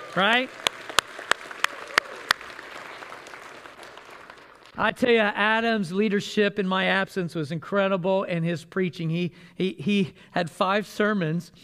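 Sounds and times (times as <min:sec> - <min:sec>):
audience applauding: 0:00.0 - 0:04.8
speech: 0:00.2 - 0:00.7, 0:04.8 - 0:11.6.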